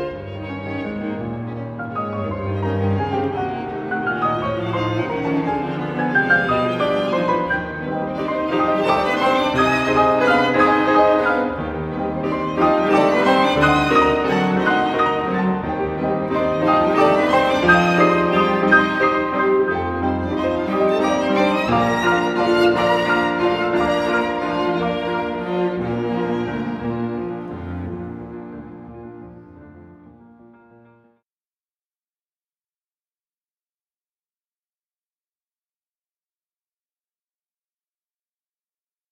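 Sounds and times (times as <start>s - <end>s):
piano: 0.0s - 31.2s.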